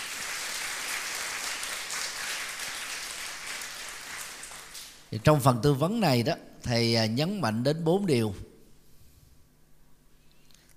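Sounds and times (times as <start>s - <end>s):
audience of twelfth-grade students applauding at a morning exam-advice session: 0.0s - 4.9s
speech: 5.1s - 8.5s.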